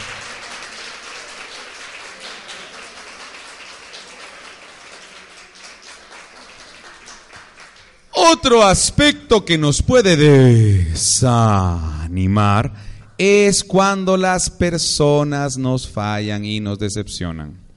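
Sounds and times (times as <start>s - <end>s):
audience applauding: 0.0s - 8.1s
speech: 8.2s - 17.6s.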